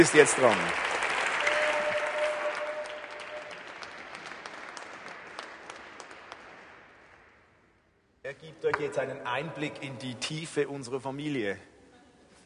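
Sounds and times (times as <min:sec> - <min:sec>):
speech: 0:00.0 - 0:00.9, 0:08.4 - 0:11.7
audience applause: 0:00.0 - 0:07.0.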